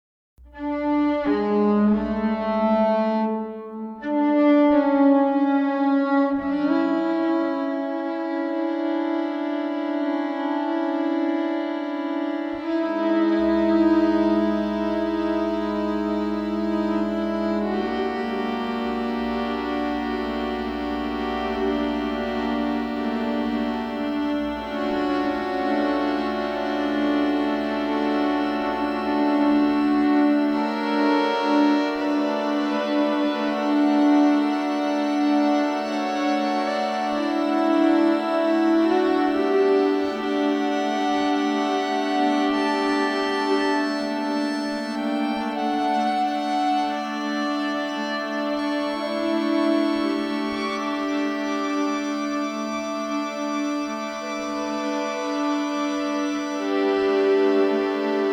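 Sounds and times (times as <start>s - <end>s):
six violins playing: 0.5s - 58.3s.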